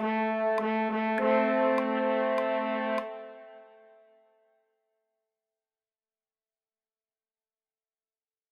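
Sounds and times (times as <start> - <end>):
French horn fanfare: 0.0 - 4.1.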